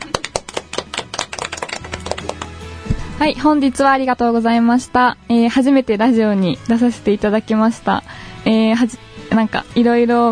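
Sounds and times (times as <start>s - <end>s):
small group hand claps: 0.0s - 2.9s
speech: 3.2s - 10.3s.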